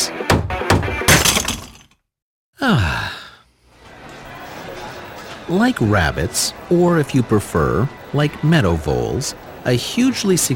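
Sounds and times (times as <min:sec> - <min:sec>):
hammer smashing something: 0:00.7 - 0:02.0
speech: 0:05.5 - 0:10.5.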